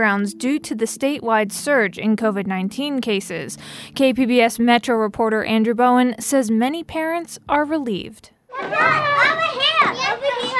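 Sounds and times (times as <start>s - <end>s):
speech: 0.0s - 10.5s
children playing at a playground: 8.5s - 10.5s.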